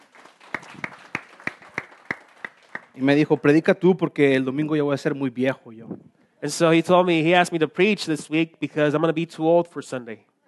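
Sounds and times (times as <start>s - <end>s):
church congregation applauding: 0.0s - 3.4s
speech: 3.0s - 10.3s.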